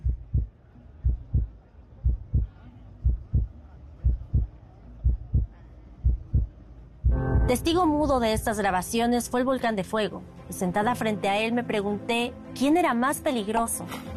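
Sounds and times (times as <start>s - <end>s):
pounding heartbeat: 0.0s - 8.6s
speech: 7.5s - 14.1s.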